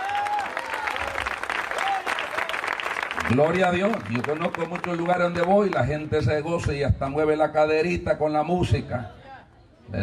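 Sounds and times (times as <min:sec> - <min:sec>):
audience applause: 0:00.0 - 0:05.9
speech: 0:03.3 - 0:09.2.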